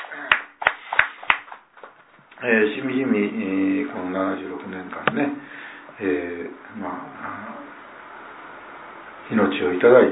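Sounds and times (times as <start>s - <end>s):
applause: 0.0s - 2.0s
speech: 2.4s - 7.5s, 9.3s - 10.0s.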